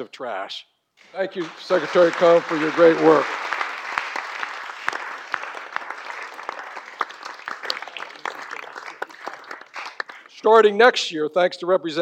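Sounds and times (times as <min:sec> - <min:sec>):
speech: 0:00.0 - 0:03.5, 0:10.4 - 0:11.9
audience applause: 0:01.0 - 0:10.4.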